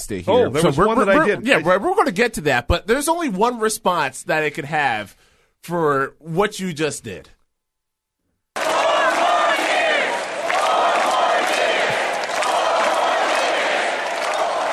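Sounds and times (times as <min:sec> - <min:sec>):
speech: 0:00.0 - 0:07.4
crowd chanting and cheering: 0:08.6 - 0:14.7.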